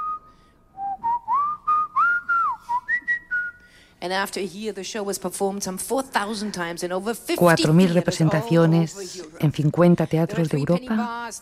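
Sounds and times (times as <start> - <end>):
person whistling a lively opera tune: 0.0 - 3.6
speech: 4.0 - 11.3.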